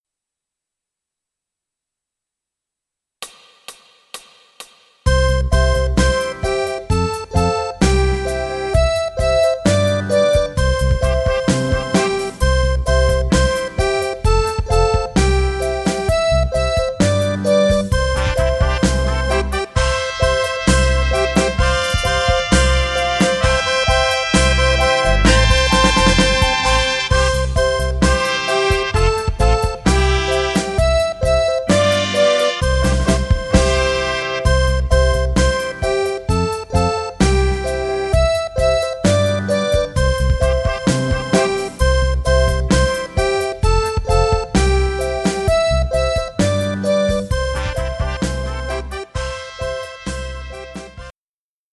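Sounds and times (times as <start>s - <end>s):
accordion: 5.1s - 51.1s.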